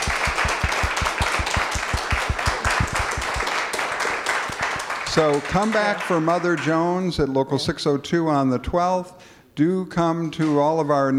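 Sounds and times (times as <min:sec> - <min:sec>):
audience applause: 0:00.0 - 0:06.7
speech: 0:05.2 - 0:11.1.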